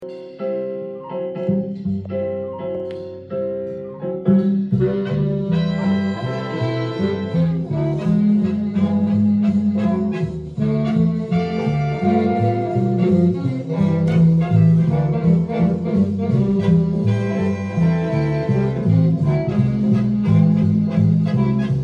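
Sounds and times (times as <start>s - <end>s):
jazz concert: 0.4s - 21.8s.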